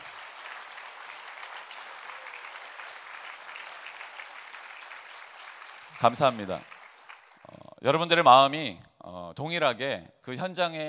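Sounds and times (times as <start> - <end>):
audience applause and cheering: 0.0 - 7.6
speech: 6.0 - 6.7, 7.8 - 10.8.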